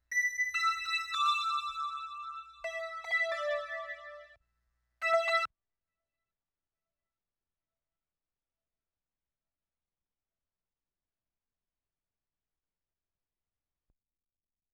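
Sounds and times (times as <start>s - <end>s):
synth bells: 0.1s - 4.4s.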